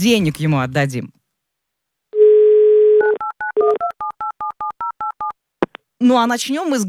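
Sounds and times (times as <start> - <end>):
speech: 0.0 - 1.2, 6.0 - 6.8
telephone dial tone: 2.2 - 5.3.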